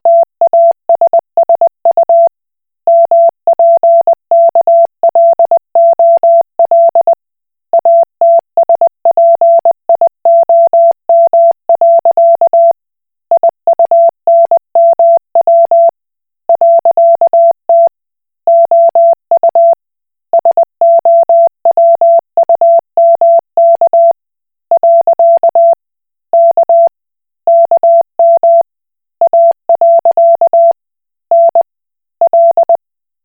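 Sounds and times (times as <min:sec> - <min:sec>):
Koch Morse code beeps: 0:00.1 - 0:02.3, 0:02.9 - 0:07.2, 0:07.8 - 0:12.8, 0:13.4 - 0:15.9, 0:16.5 - 0:17.9, 0:18.5 - 0:19.8, 0:20.4 - 0:24.2, 0:24.8 - 0:25.8, 0:26.4 - 0:26.9, 0:27.5 - 0:28.6, 0:29.2 - 0:31.6, 0:32.2 - 0:32.8.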